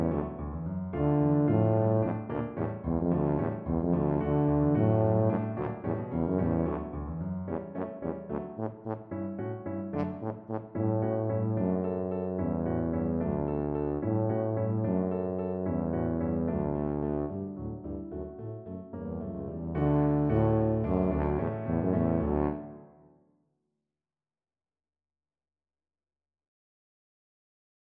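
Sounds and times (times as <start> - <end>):
tuba playing a classical piece: 0.0 - 17.9, 19.4 - 23.0.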